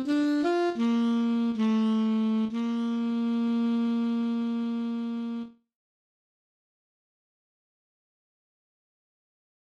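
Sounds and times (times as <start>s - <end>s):
alto saxophone playing a minuet: 0.0s - 5.6s.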